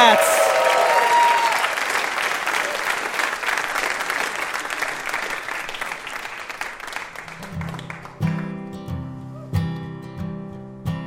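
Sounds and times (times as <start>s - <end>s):
crowd clapping: 0.0s - 8.7s.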